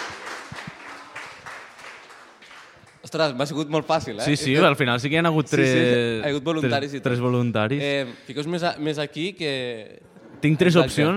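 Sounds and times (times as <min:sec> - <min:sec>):
loud audience applause for classmates: 0:00.0 - 0:03.1
speech: 0:03.1 - 0:11.1.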